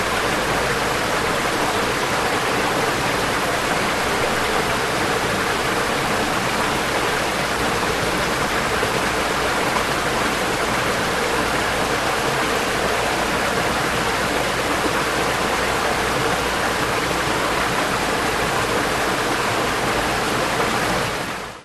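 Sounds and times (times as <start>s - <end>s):
creek flowing in a forest: 0.0s - 21.5s.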